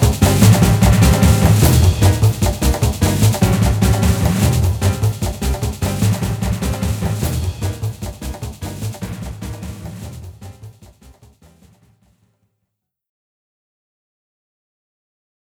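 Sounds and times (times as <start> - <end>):
typical battle background music: 0.0 - 10.8.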